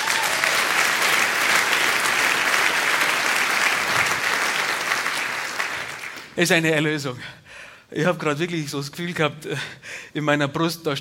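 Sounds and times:
audience applause: 0:00.0 - 0:06.4
speech: 0:06.4 - 0:10.9.

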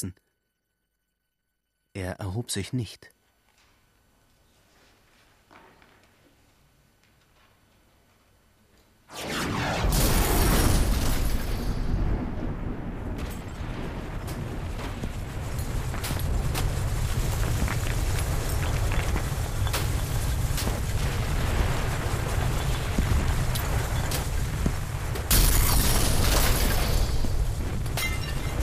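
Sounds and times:
speech: 0:00.0 - 0:00.2, 0:02.0 - 0:03.2
thunderclap explosion rolling into a long heavy rumble: 0:09.1 - 0:28.6.

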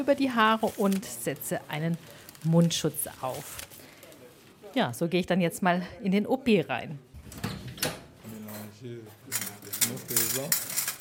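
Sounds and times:
speech: 0:00.0 - 0:03.8, 0:04.7 - 0:07.4, 0:08.8 - 0:10.7
surgical clamps and scissors clinking as they are sorted: 0:09.3 - 0:10.9.

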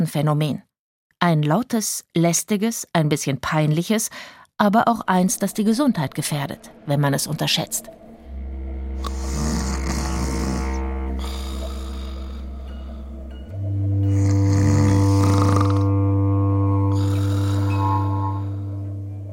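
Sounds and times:
speech: 0:00.0 - 0:08.0
loud snoring: 0:09.0 - 0:13.2, 0:14.0 - 0:16.0, 0:16.7 - 0:18.8.

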